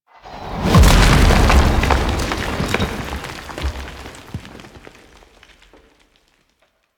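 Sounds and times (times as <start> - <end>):
ship explosion: 0.3 - 5.6.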